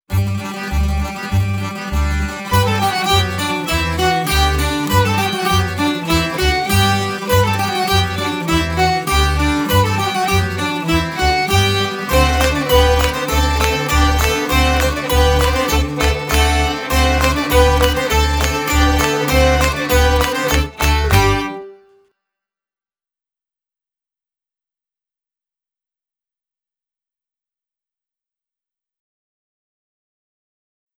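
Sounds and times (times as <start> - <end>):
exam music: 0.1 - 22.0.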